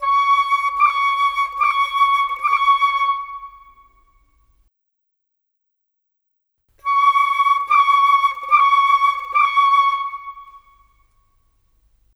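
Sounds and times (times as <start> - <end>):
cinematic oboe: 0.0 - 4.1, 6.8 - 11.1
cinematic flute: 0.0 - 4.4, 6.8 - 11.2.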